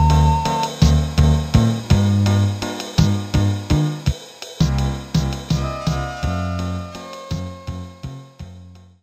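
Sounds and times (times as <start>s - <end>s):
Casio MT-500 slow rock rhythm: 0.0s - 8.2s.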